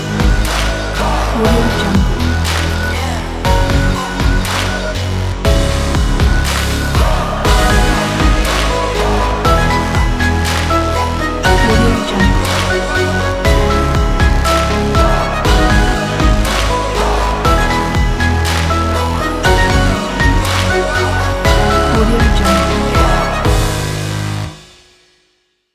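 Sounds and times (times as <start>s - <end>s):
dramatic sport intro action trailer music: 0.0s - 25.0s.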